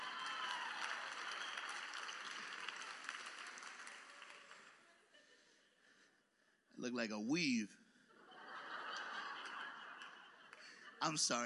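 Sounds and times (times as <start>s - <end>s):
audience clapping: 0.0s - 4.9s, 8.9s - 11.4s
speech: 6.8s - 7.8s, 11.0s - 11.4s
laughter: 8.1s - 11.4s.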